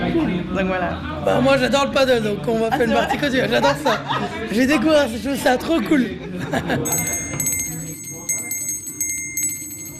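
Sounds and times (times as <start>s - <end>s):
speech: 0.1s - 7.2s
laughter: 2.6s - 4.8s, 6.0s - 7.2s
small handbell rung to announce the next round at a paddle game gathering: 6.8s - 9.9s.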